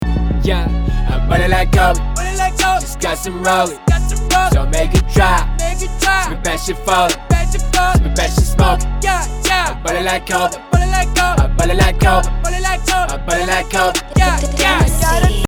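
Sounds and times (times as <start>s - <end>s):
rap music: 0.0s - 15.4s.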